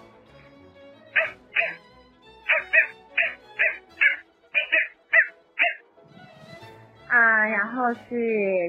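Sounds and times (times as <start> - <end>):
person imitating a dog barking: 1.2 - 1.8, 2.5 - 5.8
speech: 7.9 - 8.6.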